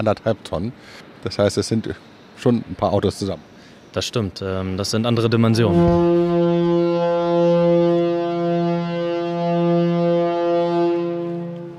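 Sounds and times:
speech: 0.0 - 7.6
shipyard horn signalling the lunch break: 5.3 - 11.7.

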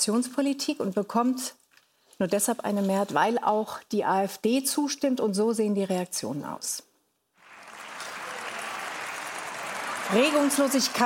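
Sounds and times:
speech: 0.0 - 1.6, 2.2 - 6.9, 10.1 - 11.0
parliament members applauding: 7.4 - 11.0
parliament members cheering: 7.4 - 11.0.

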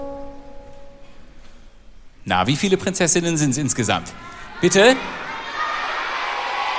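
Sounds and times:
speech: 2.3 - 5.2
audience of children shouting an answer: 4.3 - 6.7.

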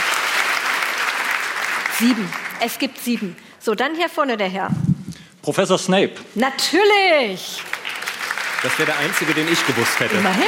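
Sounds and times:
audience clapping: 0.0 - 3.4, 7.4 - 10.4
speech: 2.0 - 4.8, 5.4 - 7.7, 8.6 - 10.4.

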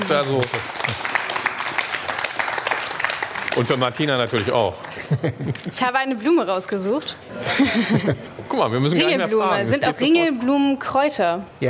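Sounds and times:
audience applause: 0.0 - 5.8
speech: 0.1 - 1.2, 3.6 - 11.6
laughter: 4.9 - 5.8, 7.4 - 8.4.

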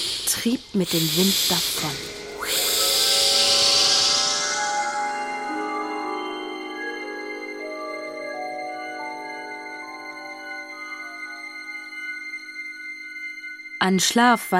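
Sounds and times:
loud ghostly breathy hiss: 0.0 - 5.2
eerie sustained shimmering tones: 0.0 - 14.5
speech: 0.4 - 2.2, 13.8 - 14.5.

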